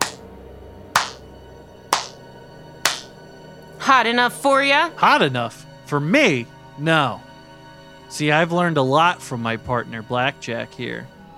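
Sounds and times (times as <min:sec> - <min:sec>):
person slow clapping while approaching: 0:00.0 - 0:00.2, 0:01.0 - 0:01.2, 0:02.0 - 0:02.2, 0:02.9 - 0:03.1
speech: 0:03.9 - 0:07.3, 0:08.1 - 0:11.1.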